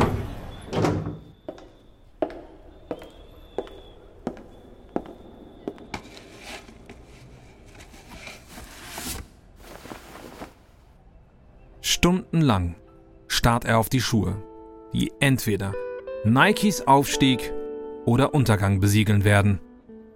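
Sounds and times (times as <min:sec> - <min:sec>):
front door of company headquarters opening: 0:00.0 - 0:01.7
speech: 0:12.0 - 0:12.8, 0:13.4 - 0:19.7.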